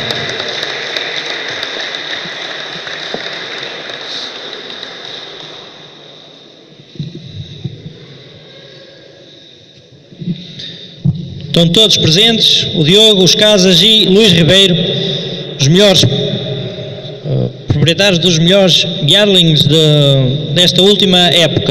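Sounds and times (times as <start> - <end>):
audience applause: 0.0 - 6.4
speech: 11.6 - 16.2, 17.9 - 21.6.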